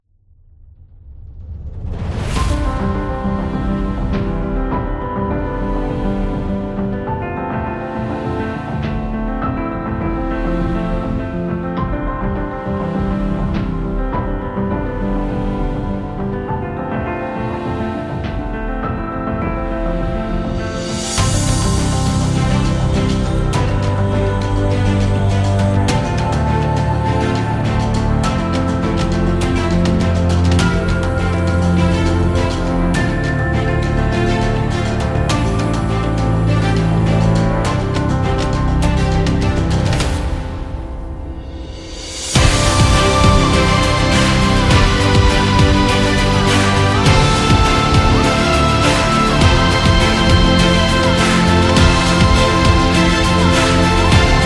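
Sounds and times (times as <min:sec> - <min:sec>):
motivational epic cinematic action music: 0:01.1 - 0:54.4.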